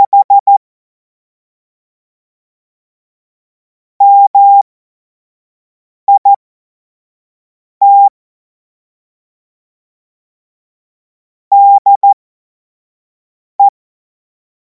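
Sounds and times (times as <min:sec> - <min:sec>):
Morse code course tones: 0:00.0 - 0:00.6, 0:04.0 - 0:04.6, 0:07.8 - 0:08.1, 0:11.5 - 0:12.2.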